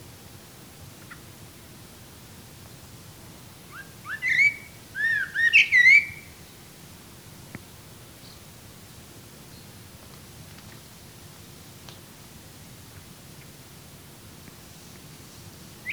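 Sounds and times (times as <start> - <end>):
Common blackbird Turdus merula whistled calls: 3.7 - 6.4.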